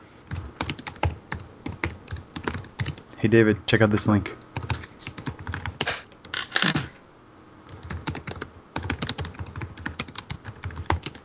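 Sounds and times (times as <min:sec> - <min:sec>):
rapid typing notes on a computer keyboard: 0:00.3 - 0:03.0, 0:04.6 - 0:06.4, 0:07.7 - 0:11.2
speech: 0:03.2 - 0:04.5.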